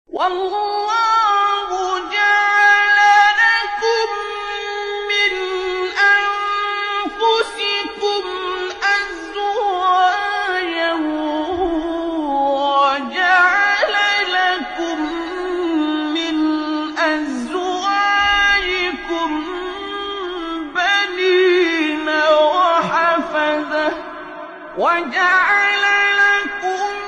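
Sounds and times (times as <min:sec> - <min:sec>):
Quran recitation: 0:00.1 - 0:27.0.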